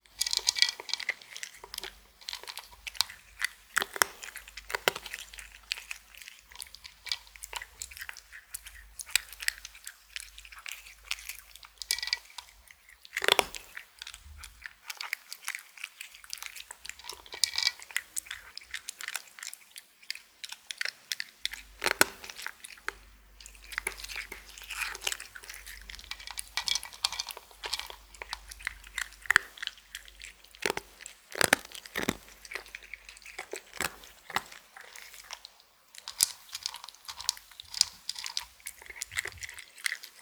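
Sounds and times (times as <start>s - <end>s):
cat eating dry food: 0.1s - 40.2s.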